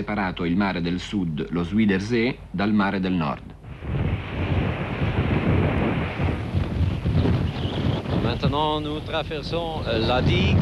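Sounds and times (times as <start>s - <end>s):
speech: 0.0s - 3.6s, 8.3s - 10.6s
strong cold wind on a sea dam: 3.6s - 10.6s.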